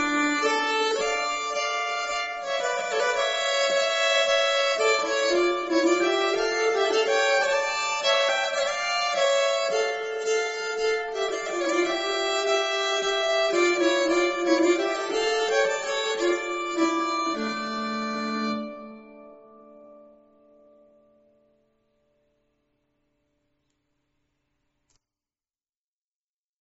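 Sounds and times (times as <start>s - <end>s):
nyckelharpa playing a wedding march: 0.0s - 20.2s.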